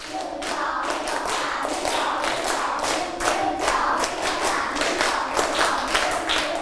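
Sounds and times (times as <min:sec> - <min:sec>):
children clapping hands: 0:00.0 - 0:06.6.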